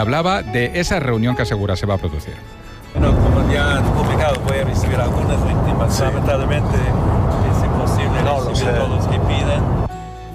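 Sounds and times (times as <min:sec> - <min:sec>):
speech: 0:00.0 - 0:09.8
airplane cabin background noise on board a flight: 0:03.0 - 0:09.9.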